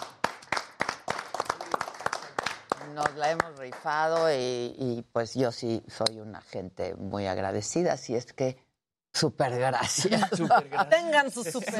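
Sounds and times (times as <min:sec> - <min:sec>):
small group applauding the team: 0:00.0 - 0:04.6
speech: 0:03.0 - 0:08.6, 0:09.2 - 0:11.7
laughter: 0:09.8 - 0:11.2.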